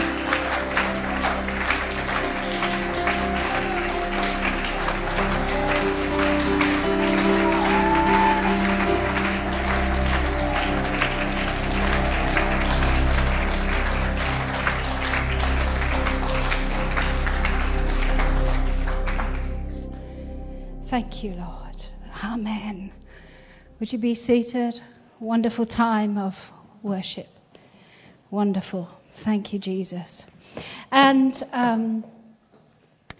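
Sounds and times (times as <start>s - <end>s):
audience applause: 0.0s - 20.1s
low hum: 0.0s - 24.3s
speech: 21.2s - 21.6s, 23.8s - 27.4s, 28.3s - 32.1s.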